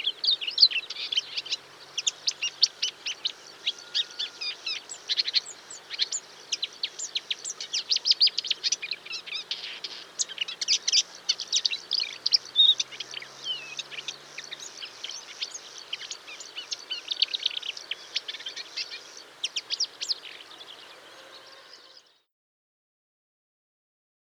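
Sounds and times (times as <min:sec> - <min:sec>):
bird song with chirps, buzzy trills and whistled slurs in a marsh: 0:00.0 - 0:22.2.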